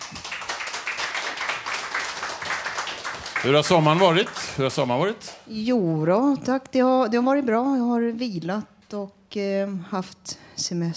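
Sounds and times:
audience applause: 0.0 - 5.4
speech: 3.4 - 10.9.

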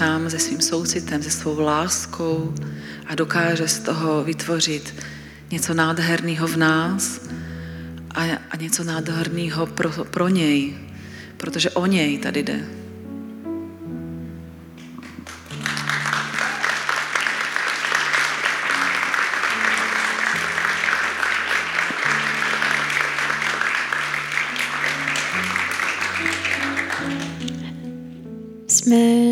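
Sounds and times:
speech: 0.0 - 7.5, 8.2 - 10.8, 11.4 - 12.8
audience applause: 14.8 - 27.8.

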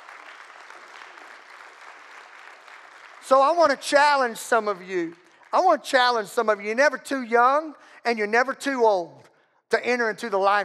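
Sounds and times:
audience clapping hands: 0.0 - 6.8
speech: 3.3 - 10.6.

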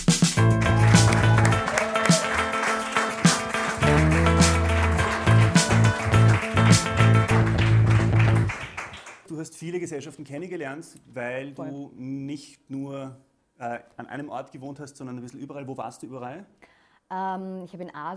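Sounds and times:
audience applause: 0.4 - 9.2
speech: 9.6 - 18.1.

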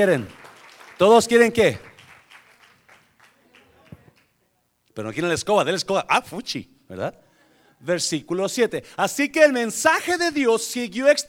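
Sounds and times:
speech: 0.0 - 0.4, 1.0 - 1.9, 5.0 - 7.2, 7.8 - 11.2
audience applause: 0.0 - 4.1.

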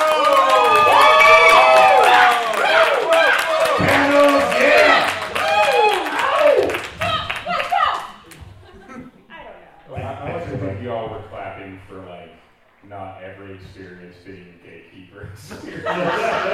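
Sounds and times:
audience clapping and cheering: 0.0 - 8.8
laughter: 8.2 - 10.7, 15.3 - 16.5.

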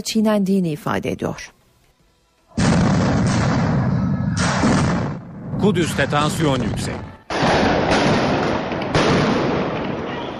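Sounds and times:
speech: 0.0 - 1.6, 5.6 - 7.1
stun grenade blasts during clashes: 2.6 - 5.6, 7.3 - 10.3.

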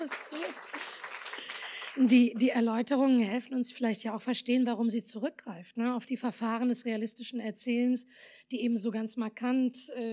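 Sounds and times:
speech: 0.0 - 0.8, 2.0 - 10.1
applause: 0.0 - 2.6.

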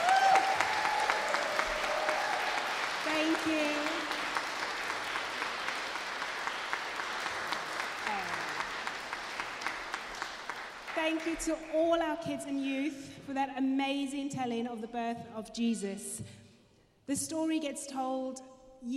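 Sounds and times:
audience applause: 0.0 - 11.6
speech: 11.2 - 16.4, 17.1 - 18.9.

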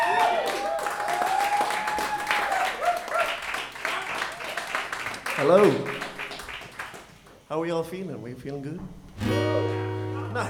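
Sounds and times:
audience applause for a band: 0.0 - 7.2
speech: 5.4 - 6.0, 7.5 - 10.4.

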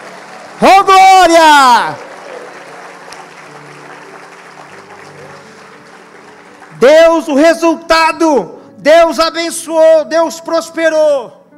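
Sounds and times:
audience applauding: 0.0 - 7.8
speech: 0.6 - 2.0, 6.8 - 11.4.

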